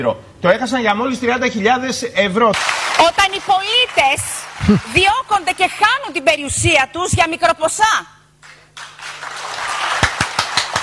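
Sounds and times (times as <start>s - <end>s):
speech: 0.0s - 8.2s
applause: 2.6s - 5.6s, 8.4s - 10.8s.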